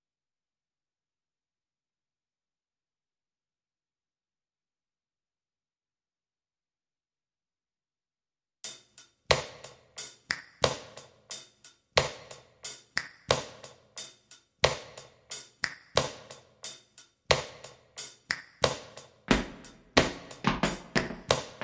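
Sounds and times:
hi-hat: 8.7 - 20.0
handclaps: 10.2 - 11.0, 12.9 - 13.6, 15.6 - 16.3, 18.2 - 21.6
foot stomps: 19.3 - 21.6.

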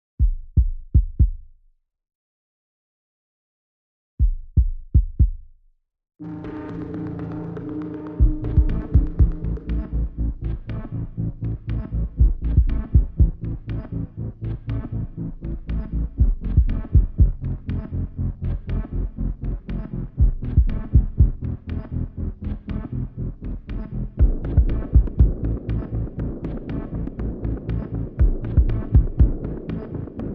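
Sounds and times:
drums: 0.2 - 1.6, 4.2 - 5.5, 6.5 - 10.0, 12.2 - 13.4, 16.2 - 17.4, 20.2 - 21.4, 24.2 - 30.2
bass: 6.2 - 30.3.

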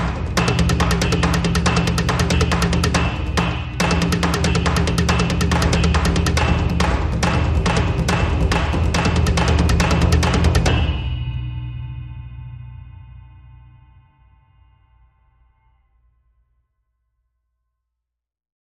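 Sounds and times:
light percussion: 0.0 - 12.5.

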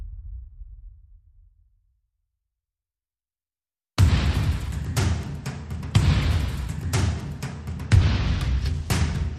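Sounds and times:
percussion: 4.0 - 9.3.

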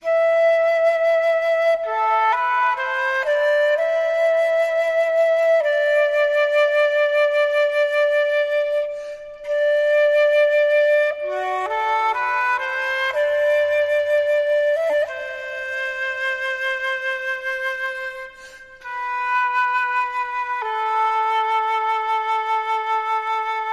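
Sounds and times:
flute: 0.0 - 23.7.

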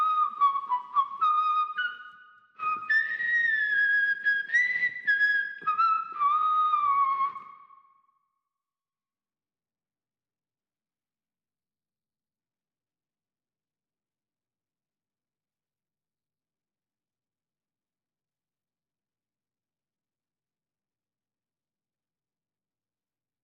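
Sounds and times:
whistle: 0.0 - 8.2.

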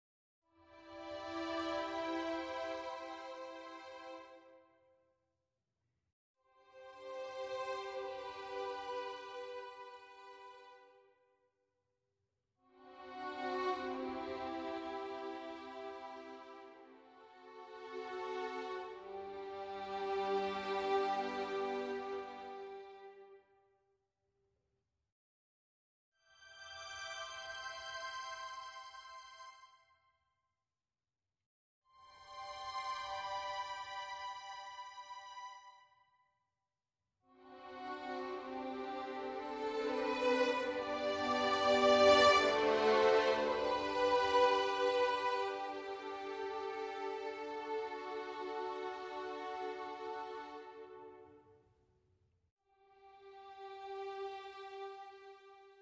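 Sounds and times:
strings: 0.7 - 4.5, 6.8 - 10.9, 12.8 - 23.1, 26.4 - 29.7, 32.1 - 35.8, 37.4 - 51.3, 53.1 - 55.6.

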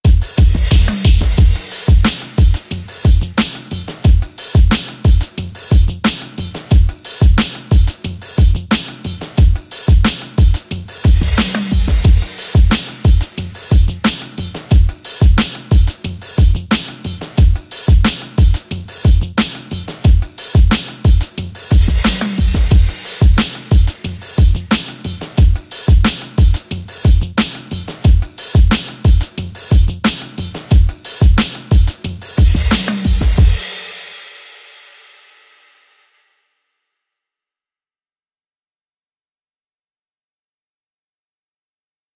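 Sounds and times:
music beat: 0.0 - 34.2.

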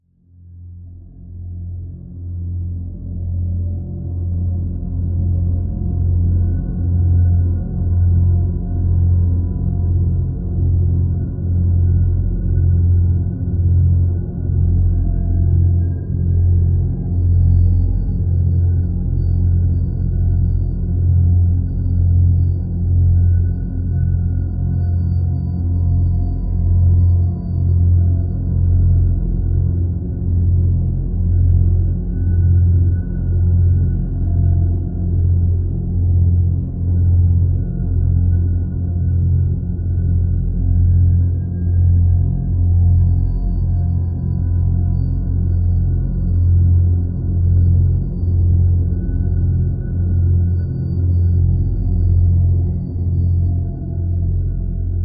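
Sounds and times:
deadly drone in F: 0.8 - 55.0.

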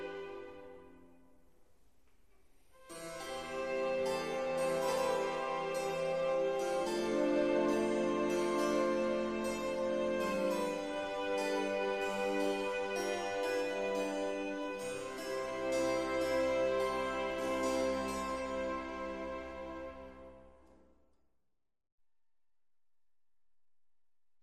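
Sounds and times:
violin concerto in C major: 0.0 - 1.2, 2.8 - 20.7.

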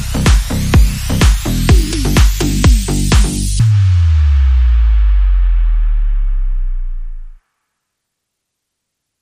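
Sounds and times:
drums: 0.0 - 6.1
bass: 0.0 - 7.4
sound effects: 0.0 - 7.4.

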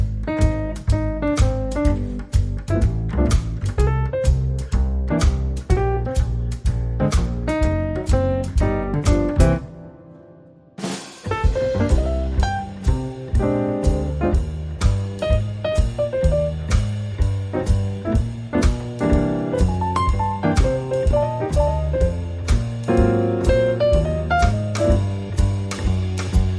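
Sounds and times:
jazzy music: 0.0 - 26.5.

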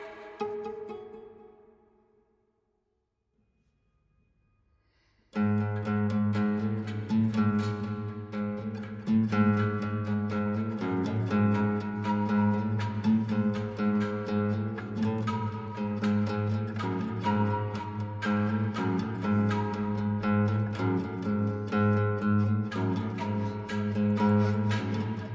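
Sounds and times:
guitar: 0.0 - 2.2, 5.3 - 25.3
flute: 5.6 - 25.3.

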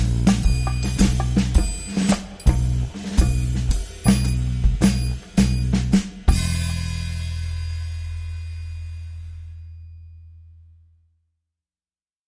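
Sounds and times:
drums and percussion underscore: 0.0 - 8.8.

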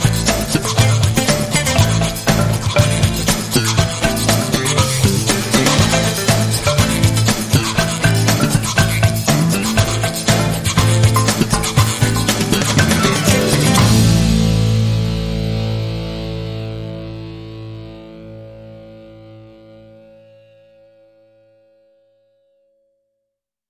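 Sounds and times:
percussion: 0.0 - 17.8.

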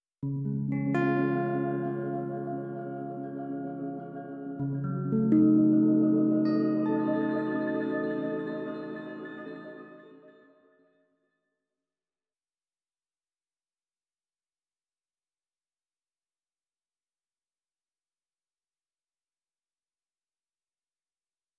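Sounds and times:
piano piece: 1.0 - 10.4.

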